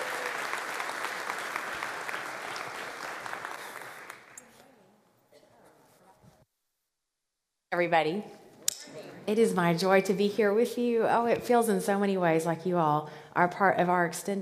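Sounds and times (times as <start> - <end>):
audience clapping: 0.0 - 4.5
speech: 7.8 - 8.4, 9.3 - 14.4.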